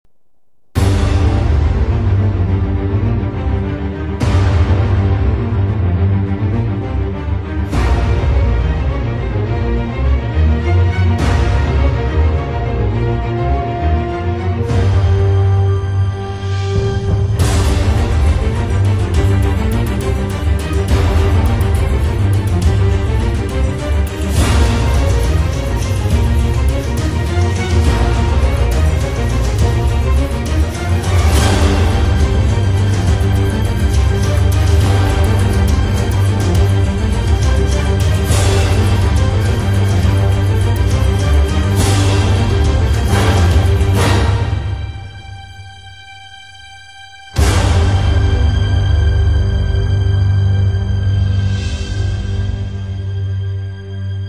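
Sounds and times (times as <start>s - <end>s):
orchestral action and drama trailer music: 0.6s - 54.2s.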